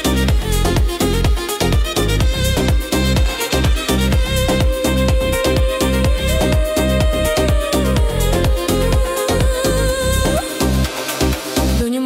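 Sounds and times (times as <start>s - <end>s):
Ukrainian folk ethno techno remix: 0.0s - 12.0s.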